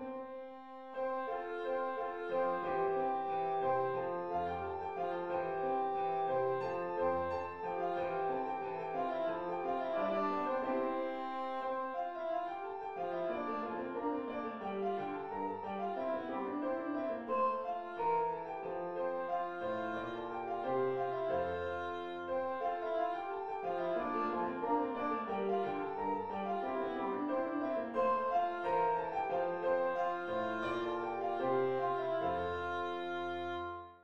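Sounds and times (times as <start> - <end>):
gavotte in a major key: 0.1 - 33.8.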